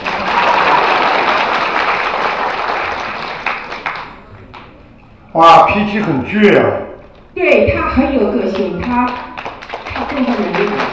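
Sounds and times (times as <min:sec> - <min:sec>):
applause: 0:00.0 - 0:04.7, 0:08.5 - 0:10.9
speech: 0:05.4 - 0:09.3, 0:10.0 - 0:10.9.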